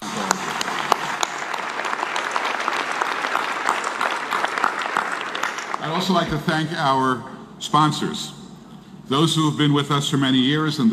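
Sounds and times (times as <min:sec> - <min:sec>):
audience applause: 0:00.0 - 0:06.2
speech: 0:06.0 - 0:08.4, 0:09.1 - 0:10.9.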